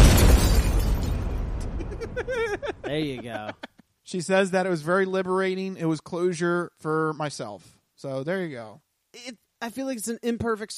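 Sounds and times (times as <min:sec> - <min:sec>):
tannerite target exploding after being shot: 0:00.0 - 0:03.2
laughter: 0:01.6 - 0:03.8
speech: 0:02.9 - 0:10.7.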